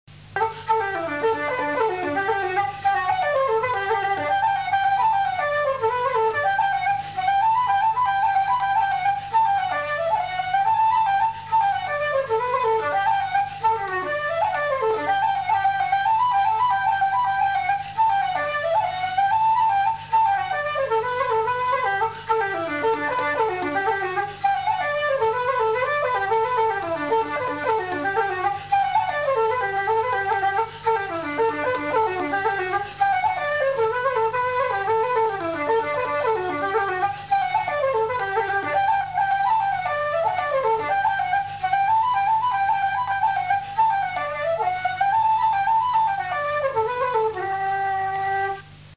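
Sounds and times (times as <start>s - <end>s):
flute: 0.1s - 48.9s.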